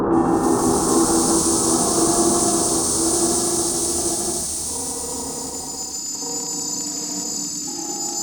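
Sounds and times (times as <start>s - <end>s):
rhythmic ambient music: 0.2s - 6.1s.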